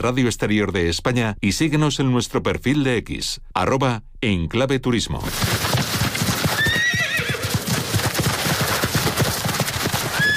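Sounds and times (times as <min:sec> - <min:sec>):
speech: 0:00.0 - 0:05.8
horse hooves clip-clopping: 0:05.3 - 0:10.3
horse neighing: 0:06.5 - 0:07.7, 0:10.1 - 0:10.3.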